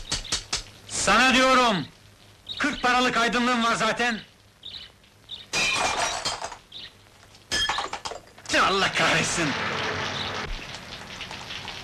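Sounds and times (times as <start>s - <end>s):
speech: 1.0s - 2.0s, 2.6s - 4.3s, 8.5s - 9.9s
bird chirps: 2.4s - 3.0s, 4.2s - 5.6s, 6.7s - 7.0s
window glass shattering: 5.5s - 6.7s, 7.5s - 8.6s.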